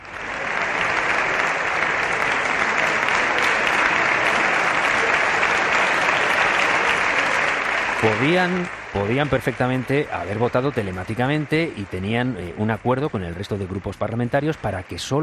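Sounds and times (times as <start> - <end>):
parliament members applauding the leader: 0.0 - 15.2
speech: 8.0 - 15.2.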